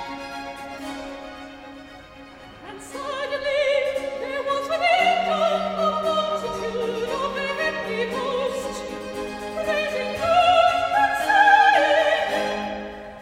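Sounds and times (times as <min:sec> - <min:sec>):
soprano singing recitative: 0:02.6 - 0:13.1.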